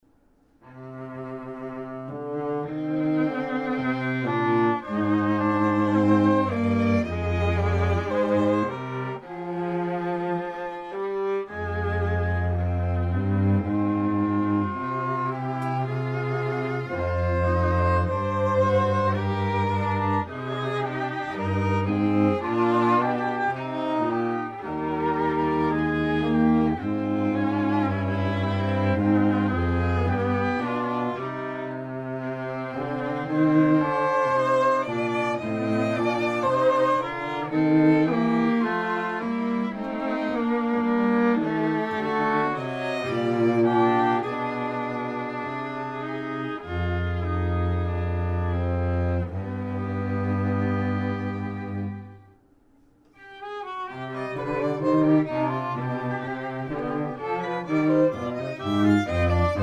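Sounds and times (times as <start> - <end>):
musical trio: 0.2 - 59.6.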